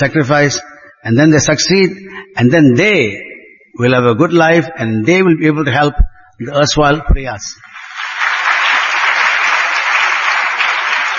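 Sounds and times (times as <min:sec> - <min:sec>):
speech: 0:00.0 - 0:07.7
audience clapping: 0:07.6 - 0:11.1.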